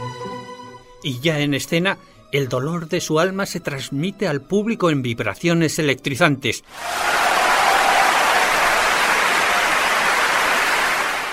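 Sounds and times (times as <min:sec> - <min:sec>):
speech: 0:01.0 - 0:07.3
frenzied audience applause: 0:06.7 - 0:11.3.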